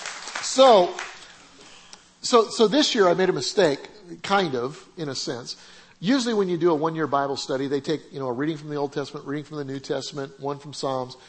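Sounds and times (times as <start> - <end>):
applause: 0.0 - 1.2
speech: 0.5 - 1.1, 2.2 - 11.2.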